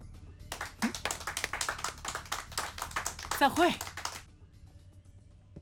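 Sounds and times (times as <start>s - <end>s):
small group hand clapping: 0.5s - 4.3s
speech: 3.4s - 3.9s.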